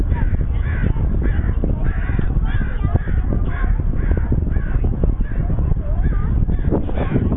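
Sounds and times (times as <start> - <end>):
seals barking on pier rocks: 0.1 - 7.3.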